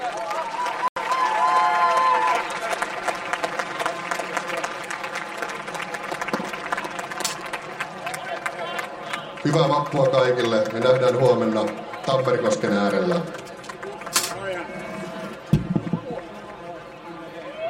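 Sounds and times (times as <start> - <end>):
audience applause at a Finnish May Day event: 0.0 - 17.6
crowd noise: 0.0 - 17.6
speech: 9.5 - 13.4.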